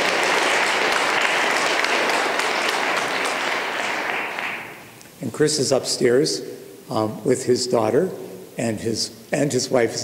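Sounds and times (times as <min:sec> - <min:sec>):
audience applause: 0:00.0 - 0:04.8
speech: 0:05.4 - 0:10.0.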